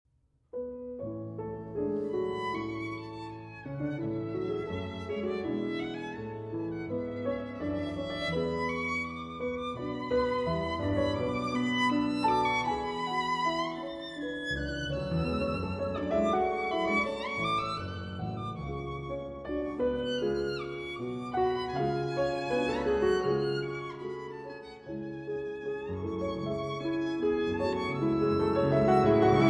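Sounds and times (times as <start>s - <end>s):
violin and piano sonata: 0.9s - 29.4s.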